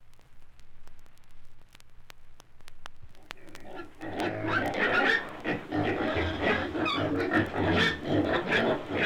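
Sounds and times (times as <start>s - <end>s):
pigs grunting and squealing: 3.3s - 9.0s.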